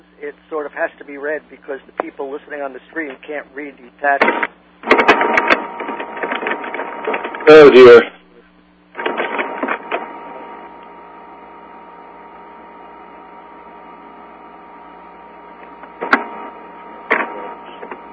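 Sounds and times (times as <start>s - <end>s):
speech: 0.2s - 5.5s, 7.1s - 8.1s
typewriter or scanning machine running: 4.2s - 8.0s, 9.0s - 10.1s.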